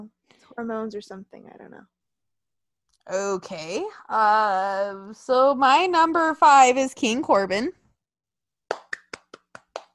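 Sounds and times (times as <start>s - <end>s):
speech: 0.0s - 2.0s, 3.0s - 7.8s
applause: 8.7s - 9.9s.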